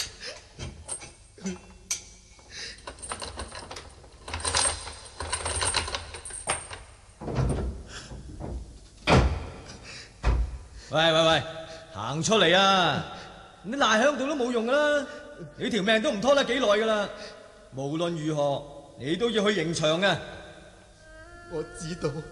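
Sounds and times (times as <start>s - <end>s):
speech: 1.4s - 1.6s, 10.9s - 11.5s, 12.1s - 20.4s, 21.5s - 22.3s
prison cell door unlocked and opened: 2.8s - 7.8s, 8.4s - 10.5s.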